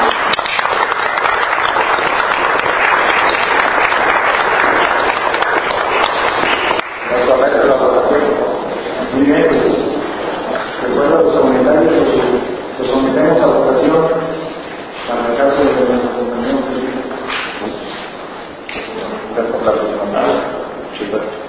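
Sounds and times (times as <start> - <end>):
audience applause: 0.0 - 7.4
people talking: 7.1 - 17.3, 18.7 - 21.4.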